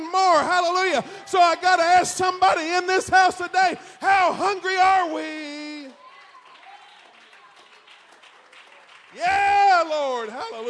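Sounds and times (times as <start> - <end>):
speech: 0.4 - 5.5, 9.2 - 10.6
church congregation standing and clapping during a service: 5.1 - 10.6.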